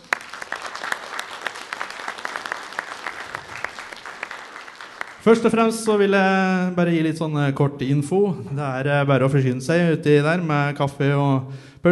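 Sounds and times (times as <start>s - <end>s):
audience clapping: 0.0s - 5.7s
speech: 5.2s - 11.9s.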